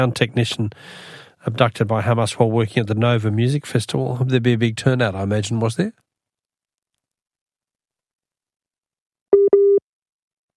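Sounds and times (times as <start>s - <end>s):
speech: 0.0s - 6.0s
telephone busy tone beeps: 9.4s - 9.8s.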